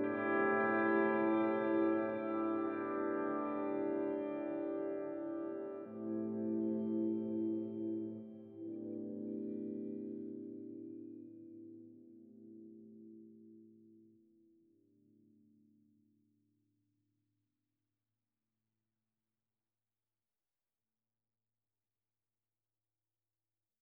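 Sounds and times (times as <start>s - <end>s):
soundscape guitars: 0.0s - 13.9s.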